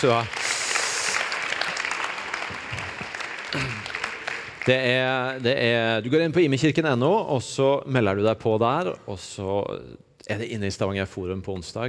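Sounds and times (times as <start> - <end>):
speech: 0.0 - 0.4, 3.5 - 3.8, 4.7 - 11.8
audience applause: 0.0 - 5.4.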